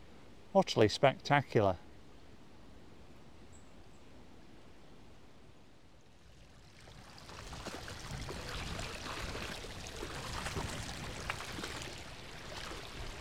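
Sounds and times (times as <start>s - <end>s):
speech: 0.5s - 1.8s
Wellington boots washed in a ford of Pudsey Beck: 6.7s - 13.1s.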